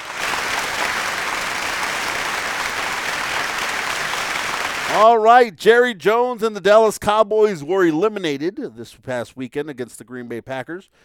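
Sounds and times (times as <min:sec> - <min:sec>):
round of applause: 0:00.0 - 0:05.3
speech: 0:04.9 - 0:11.0.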